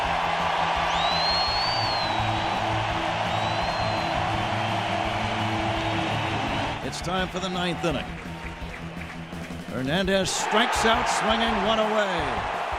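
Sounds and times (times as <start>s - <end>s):
stadium crowd roaring in an ovation: 0.0s - 9.3s, 10.1s - 12.7s
whistles and whoops: 0.6s - 6.7s
speech: 7.0s - 8.4s, 9.8s - 12.6s.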